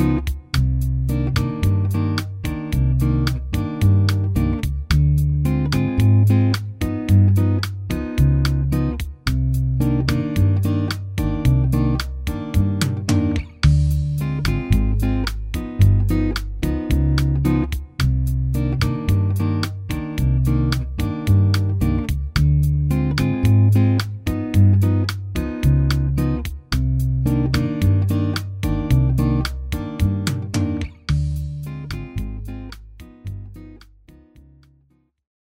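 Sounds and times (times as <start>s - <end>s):
bossa nova music: 0.0s - 34.6s.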